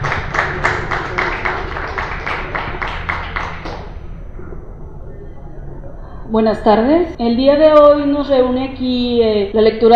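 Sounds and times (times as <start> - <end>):
audience applause: 0.0 - 4.0
speech: 6.3 - 9.9.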